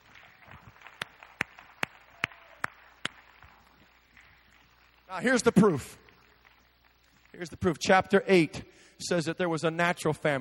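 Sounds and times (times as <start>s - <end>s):
audience clapping hands: 0.0s - 7.9s
speech: 5.1s - 6.0s, 7.4s - 10.4s.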